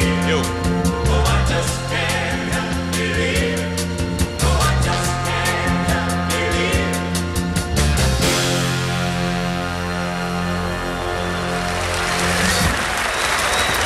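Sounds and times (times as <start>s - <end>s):
live pop song performance chords and drum hits: 0.0s - 12.9s
live audience applause at the end of a pop song: 10.8s - 13.8s.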